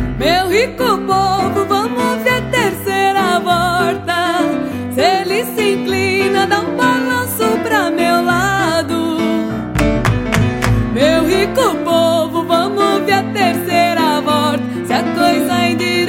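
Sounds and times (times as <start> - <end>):
woman singing: 0.2 - 9.5, 10.8 - 16.0.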